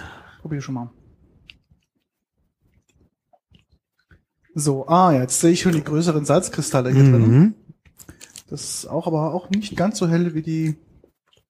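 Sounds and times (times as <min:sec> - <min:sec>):
speech: 0:00.4 - 0:01.0, 0:04.6 - 0:10.9
person chewing butter: 0:01.3 - 0:04.5, 0:11.1 - 0:11.4.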